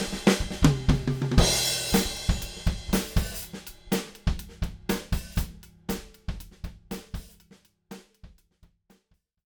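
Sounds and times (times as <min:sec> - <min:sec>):
snare drum recorded with overhead microphone: 0:00.0 - 0:07.4
bass drum recorded with overhead microphone: 0:00.0 - 0:08.8.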